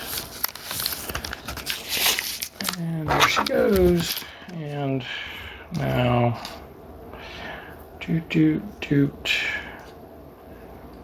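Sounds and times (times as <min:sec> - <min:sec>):
tape being pulled and handled during a DIY job: 0:00.0 - 0:04.2
speech: 0:03.2 - 0:06.6, 0:08.1 - 0:09.5.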